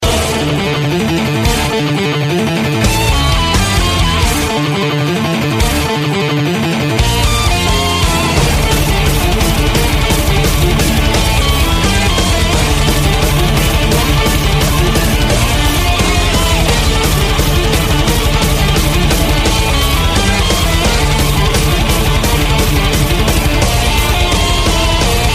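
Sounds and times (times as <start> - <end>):
black metal music: 0.0 - 25.3.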